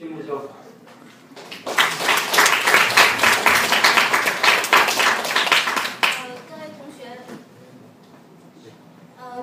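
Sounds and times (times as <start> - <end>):
speech: 0.0 - 0.7
audience applause: 1.4 - 6.4.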